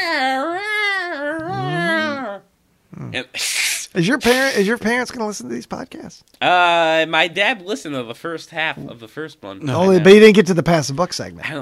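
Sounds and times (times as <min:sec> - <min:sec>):
person imitating a screeching cat: 0:00.0 - 0:03.9
speech: 0:03.1 - 0:11.6.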